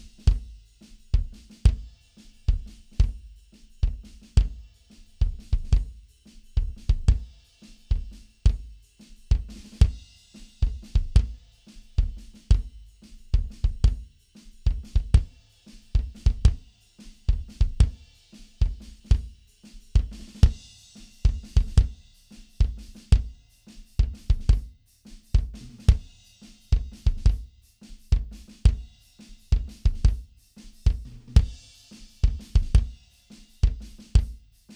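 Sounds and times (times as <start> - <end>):
mono drums: 0.0 - 34.7.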